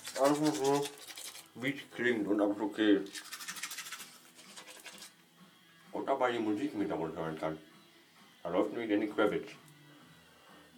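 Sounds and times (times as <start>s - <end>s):
toothbrush scrubbing teeth: 0.0s - 1.6s, 3.1s - 5.1s
speech: 0.2s - 1.0s, 1.6s - 3.2s, 6.0s - 7.7s, 8.4s - 9.6s.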